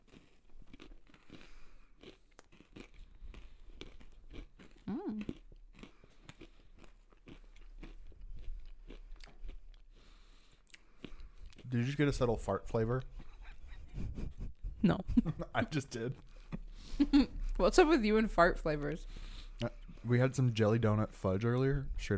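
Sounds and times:
crunching pumpkin pie coated pretzels: 0:00.0 - 0:12.4
speech: 0:11.9 - 0:13.2, 0:14.8 - 0:16.3, 0:17.1 - 0:19.3, 0:20.1 - 0:22.1.

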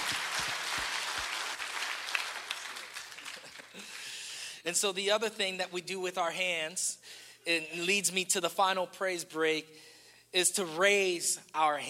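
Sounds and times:
audience applause: 0:00.0 - 0:04.2
speech: 0:04.7 - 0:11.8.

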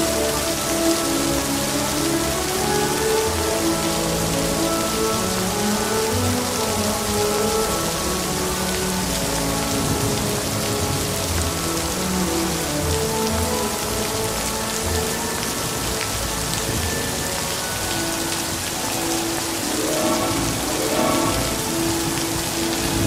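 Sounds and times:
gentle music with sustained low and mid notes: 0:00.0 - 0:23.0
steady dense rain hiss: 0:00.0 - 0:23.0
gliding tones: 0:18.3 - 0:23.0.

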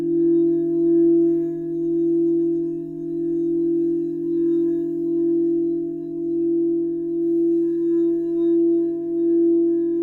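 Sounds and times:
crystal singing bowl tone: 0:00.0 - 0:10.0.

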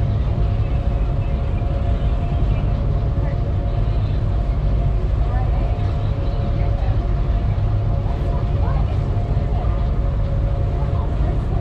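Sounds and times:
ferry into Seattle deep engine rumble: 0:00.0 - 0:11.5.

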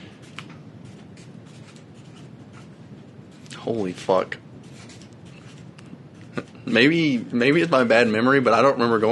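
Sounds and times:
pen scratching on paper: 0:00.3 - 0:03.5
speech: 0:03.6 - 0:04.5, 0:06.4 - 0:09.0.

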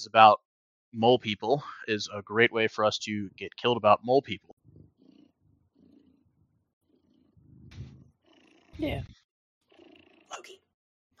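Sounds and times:
speech: 0:00.0 - 0:04.5, 0:08.8 - 0:09.2
cat purring: 0:04.5 - 0:10.6.

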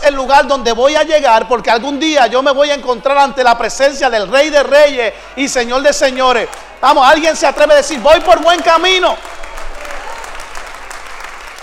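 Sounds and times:
speech: 0:00.1 - 0:09.4
audience applause: 0:08.0 - 0:11.6.

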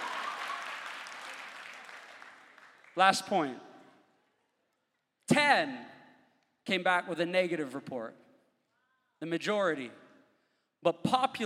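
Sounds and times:
congregation clapping during a church sermon: 0:00.0 - 0:03.9
speech: 0:03.0 - 0:03.7, 0:05.3 - 0:06.0, 0:06.6 - 0:08.2, 0:09.2 - 0:10.0, 0:10.8 - 0:11.4.

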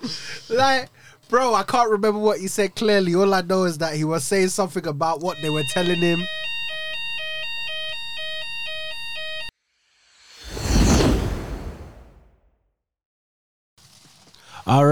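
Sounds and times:
laughter: 0:00.0 - 0:06.2
speech: 0:00.0 - 0:06.5, 0:14.7 - 0:14.9
fire alarm going off: 0:04.2 - 0:09.5.

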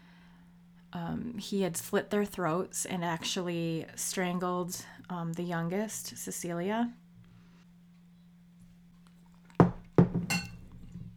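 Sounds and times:
faint steady low hum: 0:00.0 - 0:11.1
speech: 0:00.9 - 0:07.0
wine glass clinking: 0:09.6 - 0:10.9.

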